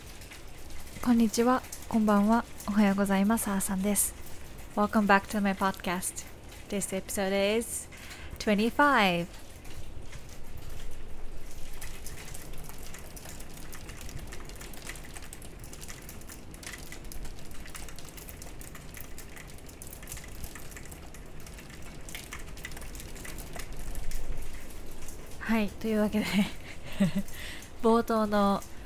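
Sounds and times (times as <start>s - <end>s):
rain falling: 0.0s - 28.8s
speech: 1.0s - 4.2s, 4.8s - 9.4s, 25.8s - 28.8s
laughter: 26.2s - 27.4s.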